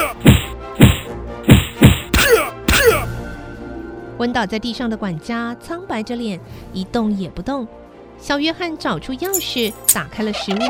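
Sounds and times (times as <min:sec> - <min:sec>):
punches landing on a head: 0:00.0 - 0:03.1
speech: 0:04.2 - 0:10.6.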